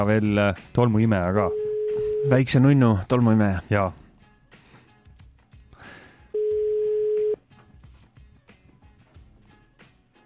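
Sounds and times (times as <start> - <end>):
speech: 0.0 - 4.0
phone ringing tone: 1.4 - 2.5, 6.4 - 7.4.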